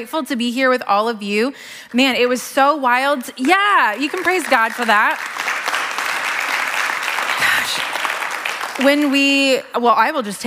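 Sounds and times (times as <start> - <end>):
speech: 0.0 - 5.5, 8.8 - 10.4
audience applause: 3.4 - 9.4.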